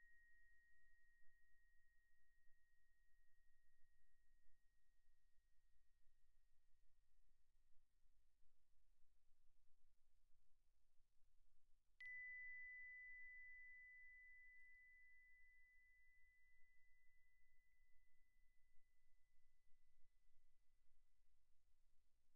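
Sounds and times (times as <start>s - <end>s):
soft plastic bells: 12.0s - 15.9s.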